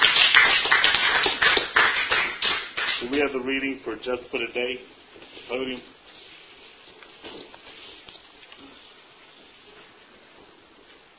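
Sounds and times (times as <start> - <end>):
audience applause: 0.0 - 3.0
speech: 3.1 - 6.0.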